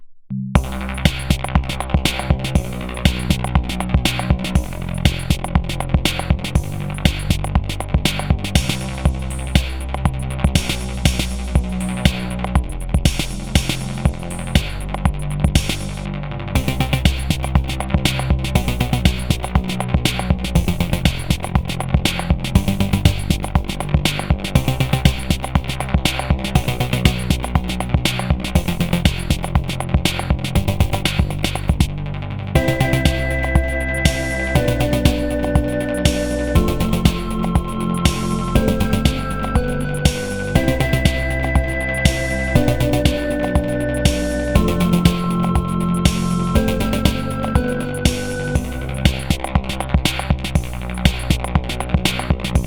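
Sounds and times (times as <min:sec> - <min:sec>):
market music: 0:00.6 - 0:32.0, 0:32.6 - 0:52.6.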